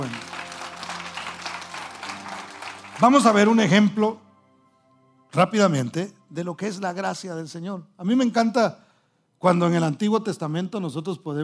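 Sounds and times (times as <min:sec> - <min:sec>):
audience applause: 0:00.0 - 0:03.6
speech: 0:03.0 - 0:04.2, 0:05.3 - 0:08.8, 0:09.4 - 0:11.4.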